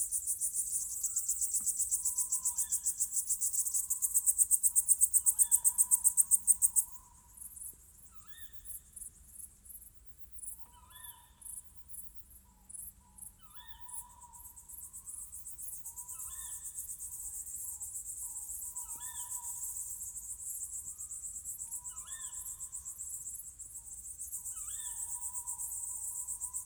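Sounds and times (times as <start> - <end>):
crickets chirping on a summer night: 0.0 - 10.5, 11.1 - 26.6.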